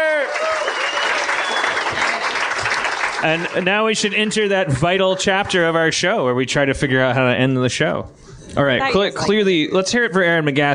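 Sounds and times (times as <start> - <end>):
faint cheers: 0.0 - 2.2
audience applause: 0.0 - 4.7
speech: 3.2 - 10.7.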